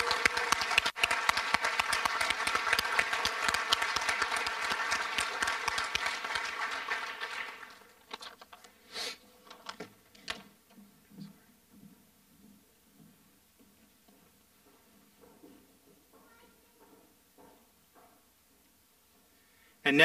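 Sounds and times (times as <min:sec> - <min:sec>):
audience applause: 0:00.0 - 0:08.1.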